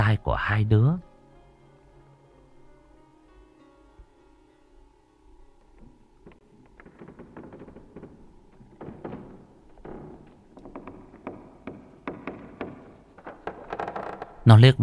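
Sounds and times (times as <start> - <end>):
speech: 0.0 - 1.1, 14.5 - 14.8
wardrobe door being closed with wooden thuds and clunks: 6.7 - 14.3.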